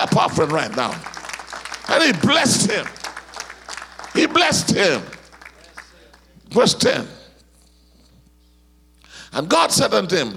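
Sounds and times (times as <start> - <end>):
speech: 0.0 - 1.1, 1.9 - 3.0, 4.2 - 5.2, 6.5 - 7.2, 9.3 - 10.3
audience clapping: 0.0 - 6.4.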